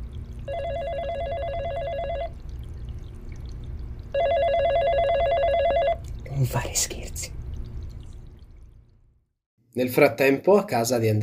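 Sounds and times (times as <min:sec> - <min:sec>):
telephone ringing: 0:00.5 - 0:02.4, 0:04.2 - 0:06.0
speech: 0:06.5 - 0:07.3, 0:09.8 - 0:11.2.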